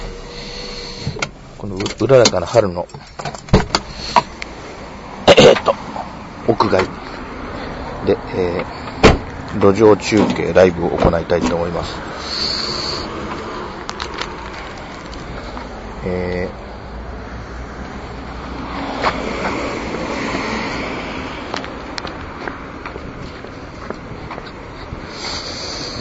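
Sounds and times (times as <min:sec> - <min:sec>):
street traffic: 0:00.0 - 0:25.9
speech: 0:01.6 - 0:03.3, 0:06.6 - 0:07.0, 0:08.0 - 0:08.8, 0:09.5 - 0:12.4, 0:16.0 - 0:16.6.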